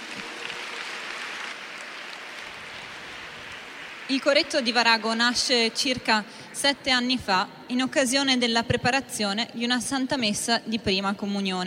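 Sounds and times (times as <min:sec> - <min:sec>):
audience applause: 0:00.0 - 0:05.4
speech: 0:04.1 - 0:11.6.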